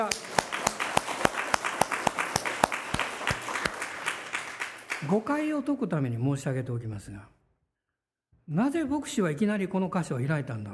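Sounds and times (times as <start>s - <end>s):
audience applause: 0.0s - 5.2s
speech: 5.0s - 7.4s, 8.5s - 10.7s.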